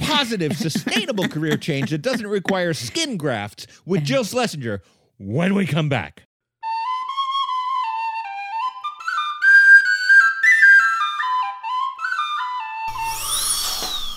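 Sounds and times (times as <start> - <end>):
laughter: 0.0 - 3.4
speech: 0.2 - 6.3
whistled melody: 6.6 - 14.1
dental drill whirring: 12.9 - 14.1.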